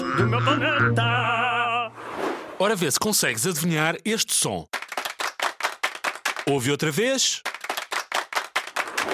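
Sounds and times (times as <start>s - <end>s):
speech: 0.2s - 1.5s, 2.6s - 4.7s, 6.5s - 7.5s
group of people clapping: 4.7s - 9.1s.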